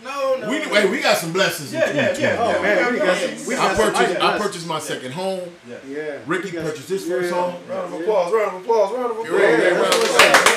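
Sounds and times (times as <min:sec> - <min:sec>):
excited voices: 0:00.0 - 0:04.7, 0:08.8 - 0:10.5
speech: 0:00.7 - 0:10.5
short burst of hand claps: 0:09.9 - 0:10.5.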